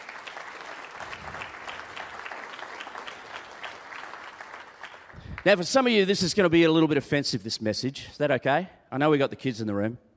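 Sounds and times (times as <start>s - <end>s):
crowd applause: 0.0s - 5.6s
speech: 5.4s - 10.1s.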